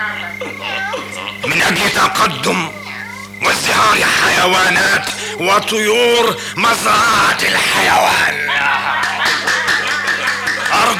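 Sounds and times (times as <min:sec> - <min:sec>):
laughter: 0:00.0 - 0:02.5, 0:07.5 - 0:10.9
speech: 0:01.5 - 0:02.8, 0:03.4 - 0:08.6
crowd applauding steadily: 0:08.5 - 0:10.9.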